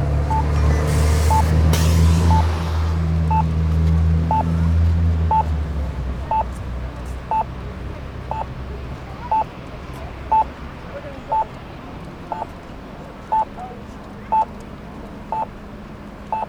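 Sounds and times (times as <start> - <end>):
heavy engine rumbling: 0.0 - 11.6
pedestrian-crossing signal beeping at Rideau and Sussex Street: 0.2 - 1.5, 2.3 - 2.5, 3.3 - 3.5, 4.3 - 4.6, 5.3 - 5.6, 6.3 - 6.5, 7.3 - 7.5, 8.3 - 8.5, 9.3 - 9.5, 10.3 - 10.5, 11.3 - 11.5, 12.3 - 12.6, 13.3 - 13.6, 14.3 - 14.5, 15.3 - 15.5.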